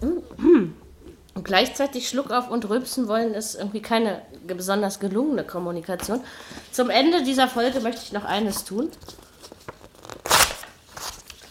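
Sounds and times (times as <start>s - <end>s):
speech: 1.5s - 9.2s
paper notes being crumpled and torn: 7.6s - 11.4s.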